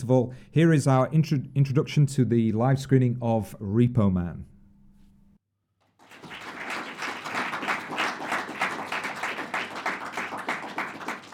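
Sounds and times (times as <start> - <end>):
speech: 0.0 - 4.5
audience applause: 6.0 - 11.3.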